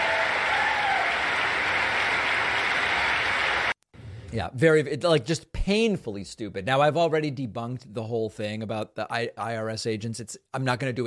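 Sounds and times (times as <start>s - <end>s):
applause and clapping: 0.0s - 3.8s
speech: 4.3s - 11.0s.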